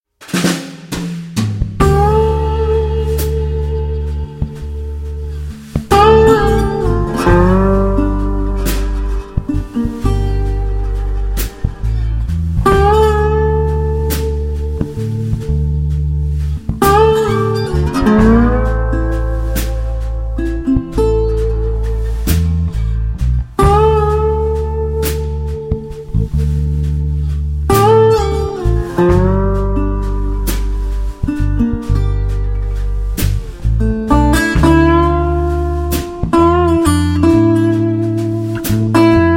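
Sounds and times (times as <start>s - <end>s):
Balkan blues music: 0.1s - 39.3s.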